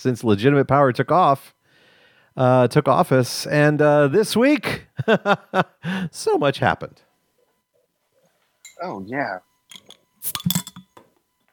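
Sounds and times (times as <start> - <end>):
speech: 0.0 - 1.6, 2.4 - 7.0, 8.8 - 9.5
glass beer bottles clinking: 9.7 - 11.5.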